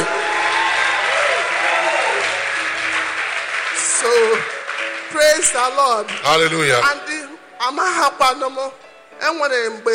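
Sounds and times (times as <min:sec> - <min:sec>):
audience clapping: 0:00.0 - 0:07.0
speech: 0:05.4 - 0:09.9.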